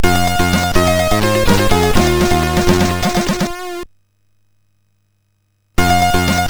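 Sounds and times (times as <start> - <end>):
MOS6581R4 SID chip music: 0.0 - 3.9, 5.8 - 6.4.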